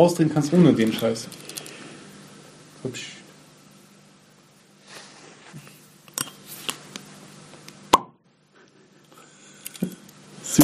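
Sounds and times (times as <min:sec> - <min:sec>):
speech: 0:00.0 - 0:01.5, 0:02.8 - 0:03.2
beer bottle opening pop: 0:07.9 - 0:08.2.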